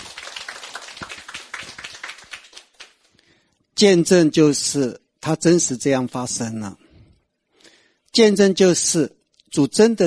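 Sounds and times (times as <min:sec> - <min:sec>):
audience clapping: 0:00.0 - 0:03.1
speech: 0:03.8 - 0:06.8, 0:08.2 - 0:10.0.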